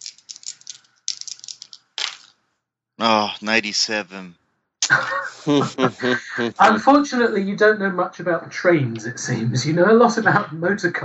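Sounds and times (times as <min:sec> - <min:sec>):
dice rolling: 0:00.0 - 0:02.4
laughter: 0:03.0 - 0:04.2, 0:04.8 - 0:07.4
speech: 0:03.0 - 0:11.0.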